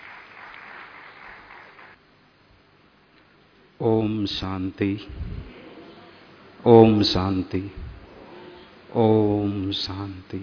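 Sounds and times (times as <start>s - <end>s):
audience applause: 0.0s - 2.0s
speech: 3.8s - 5.6s, 6.6s - 8.0s, 8.9s - 10.4s.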